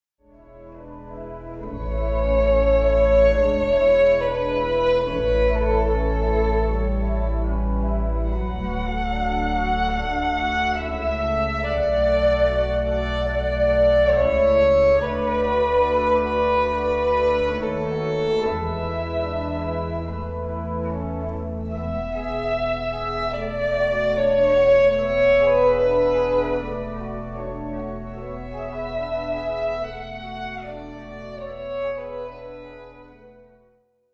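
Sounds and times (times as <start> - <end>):
violin playing: 0.4 - 33.6.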